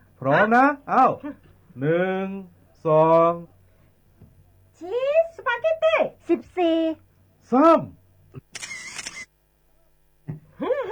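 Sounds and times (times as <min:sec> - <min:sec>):
speech: 0:00.2 - 0:03.5, 0:04.8 - 0:08.0
camera shutter firing for a group photo: 0:08.5 - 0:09.3.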